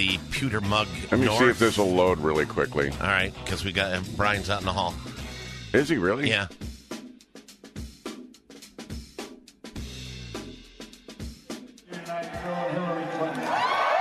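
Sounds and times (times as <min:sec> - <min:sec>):
speech: 0:00.0 - 0:05.1, 0:05.7 - 0:06.6
crowd cheering: 0:11.9 - 0:13.9.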